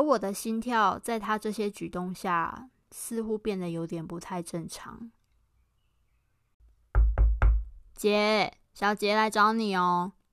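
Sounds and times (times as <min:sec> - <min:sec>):
speech: 0:00.0 - 0:05.2, 0:08.0 - 0:10.2
heavy knocking on a bedroom door: 0:06.9 - 0:07.9.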